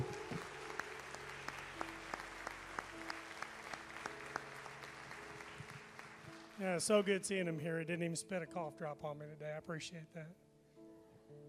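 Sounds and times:
audience applause: 0.0s - 7.3s
speech: 6.6s - 10.4s.

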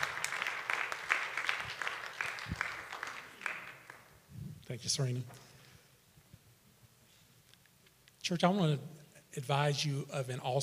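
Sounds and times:
audience applause: 0.0s - 4.2s
speech: 4.7s - 5.4s, 8.3s - 10.6s.

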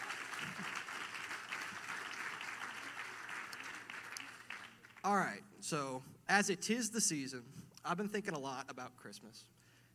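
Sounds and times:
audience round of applause: 0.0s - 5.2s
speech: 5.0s - 9.6s.

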